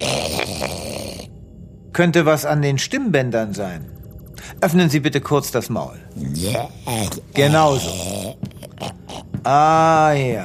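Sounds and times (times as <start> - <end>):
person growling like an animal: 0.0 - 1.3, 6.2 - 9.8
speech: 2.0 - 4.0, 4.6 - 8.5, 9.4 - 10.4.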